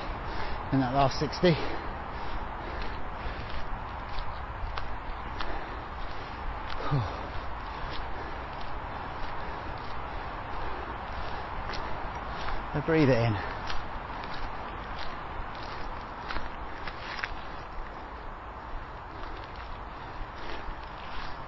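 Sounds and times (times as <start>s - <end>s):
footsteps walking up a steep hill: 0.0s - 21.4s
speech: 0.7s - 1.8s, 12.8s - 13.6s.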